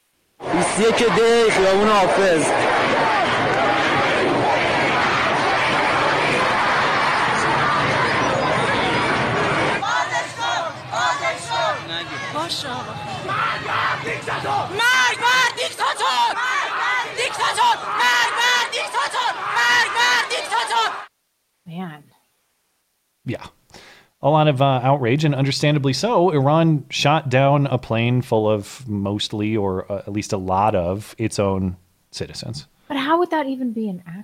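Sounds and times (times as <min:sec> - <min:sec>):
large protest crowd chanting: 0:00.4 - 0:21.1
speech: 0:00.7 - 0:03.2, 0:12.4 - 0:16.5, 0:24.2 - 0:34.2.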